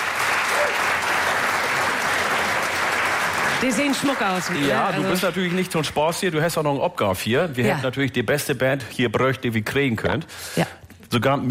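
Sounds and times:
audience applause: 0.0s - 6.3s
speech: 3.6s - 11.4s.

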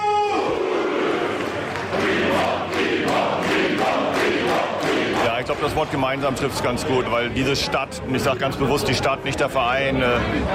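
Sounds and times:
large crowd of football fans cheering: 0.0s - 6.2s
speech: 5.5s - 10.5s.

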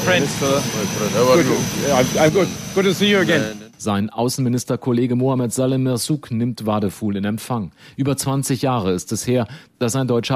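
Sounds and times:
airplane jet engine roar on arrival: 0.0s - 3.8s
speech: 0.0s - 10.3s.

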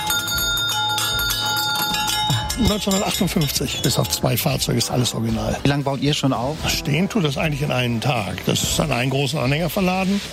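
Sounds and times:
original 1950s fire engine bell on a nostalgia carousel ringing: 0.0s - 4.6s
speech: 2.6s - 10.3s.

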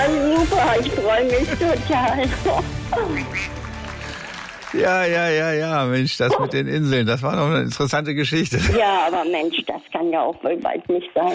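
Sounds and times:
speech: 0.7s - 3.6s, 4.7s - 11.3s
duck quacking: 3.0s - 3.5s.

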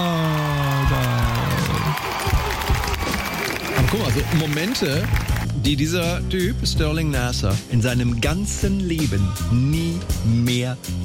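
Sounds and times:
audience cheering with whoops and shouts: 0.0s - 5.5s
speech: 4.0s - 11.0s.

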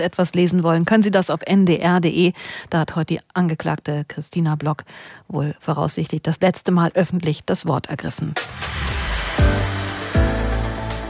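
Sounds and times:
speech: 0.0s - 8.8s
drone buzzing: 8.4s - 11.0s.

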